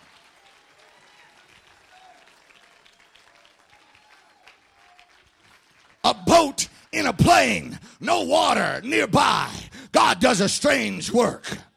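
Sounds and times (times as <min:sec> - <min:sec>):
audience clapping hands: 0:00.0 - 0:07.6
speech: 0:06.4 - 0:11.7.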